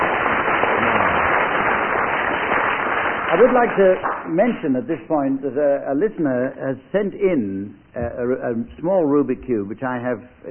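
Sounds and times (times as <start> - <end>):
audience applause: 0.0 - 4.3
speech: 3.3 - 10.4.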